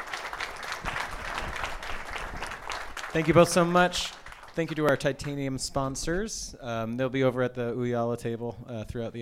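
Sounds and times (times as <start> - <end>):
audience applause after a panel discussion: 0.0 - 5.5
speech: 3.1 - 9.1.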